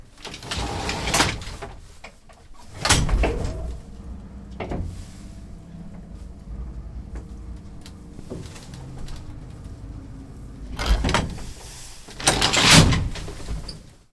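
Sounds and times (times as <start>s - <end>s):
door: 2.7s - 13.9s.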